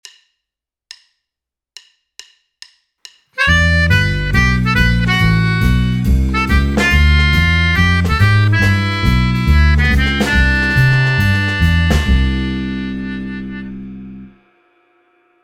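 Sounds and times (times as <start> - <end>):
soloist exercise: 3.4 - 14.4.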